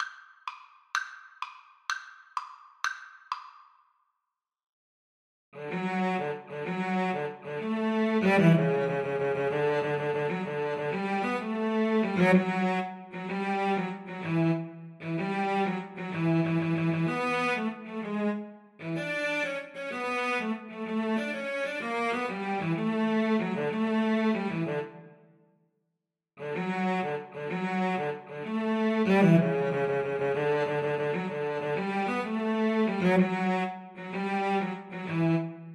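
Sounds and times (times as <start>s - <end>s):
cello duet: 5.6s - 25.2s, 26.4s - 35.7s.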